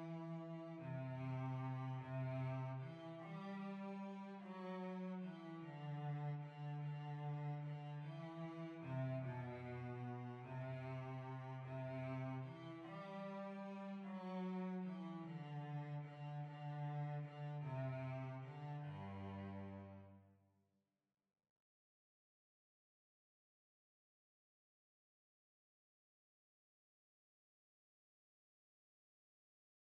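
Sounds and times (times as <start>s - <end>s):
cello playing a waltz: 0.0s - 20.2s.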